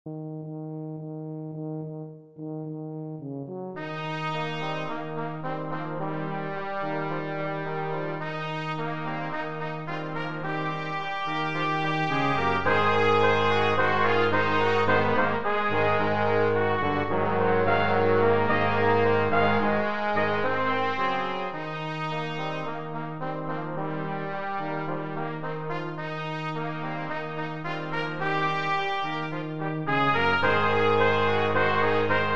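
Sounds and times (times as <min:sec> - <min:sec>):
brass quartet playing: 0:00.1 - 0:32.3.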